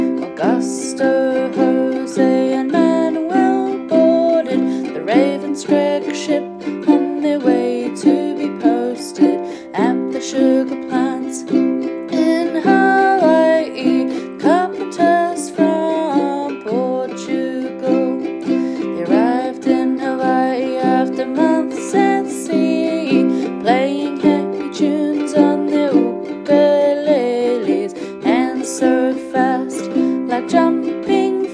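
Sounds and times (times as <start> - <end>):
ukulele sea shanty: 0.0 - 31.5.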